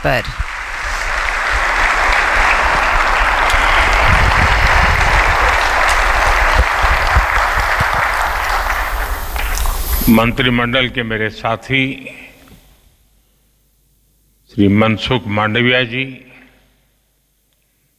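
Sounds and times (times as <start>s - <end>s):
speech: 0.0s - 0.5s, 10.1s - 12.2s, 14.6s - 16.3s
loud audience applause: 0.0s - 11.1s.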